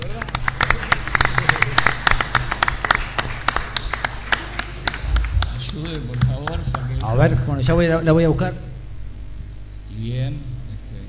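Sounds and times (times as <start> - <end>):
audience applause: 0.0 - 7.2
speech: 7.2 - 8.7.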